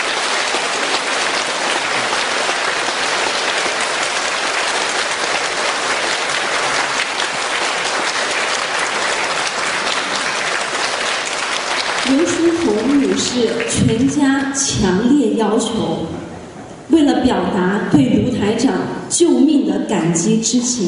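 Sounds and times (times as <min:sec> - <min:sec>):
warm applause from a large crowd: 0:00.0 - 0:14.5
speech: 0:13.4 - 0:16.2, 0:16.9 - 0:20.8.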